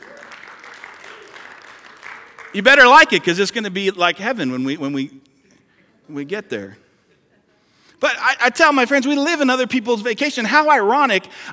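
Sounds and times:
audience applause: 0.0 - 2.8
speech: 2.5 - 5.3, 6.1 - 6.8, 8.0 - 11.5.

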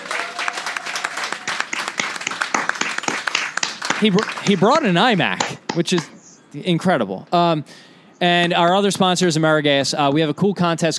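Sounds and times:
round of applause: 0.0 - 5.5
speech: 4.0 - 10.9.

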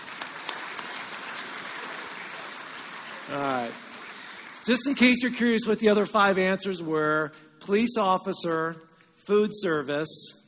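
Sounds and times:
crowd applauding: 0.0 - 5.5
speech: 3.3 - 3.9, 4.7 - 10.4.

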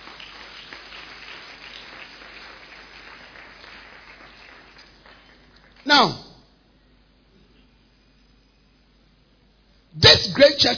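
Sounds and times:
crowd of many people applauding: 0.0 - 5.9
speech: 5.8 - 6.2, 10.5 - 10.7.

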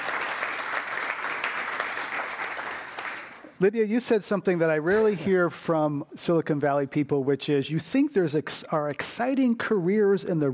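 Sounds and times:
audience clapping: 0.0 - 3.7
speech: 3.6 - 10.5.

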